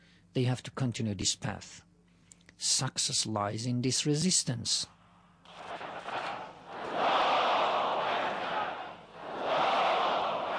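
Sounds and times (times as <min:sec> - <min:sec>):
speech: 0:00.4 - 0:01.9, 0:02.6 - 0:05.8
audience chanting religious and political slogans in unison: 0:05.5 - 0:10.5.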